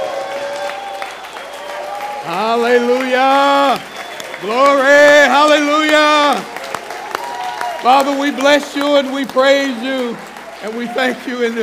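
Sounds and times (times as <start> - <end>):
church congregation clapping in praise during a service: 0.0 - 11.6
speech: 2.2 - 6.5, 7.8 - 11.6.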